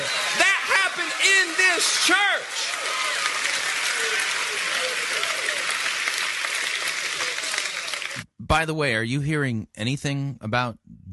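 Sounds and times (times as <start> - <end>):
scattered whoops and shouts: 0.0 - 5.8
audience applause: 0.0 - 8.2
speech: 1.8 - 2.4, 8.5 - 10.9.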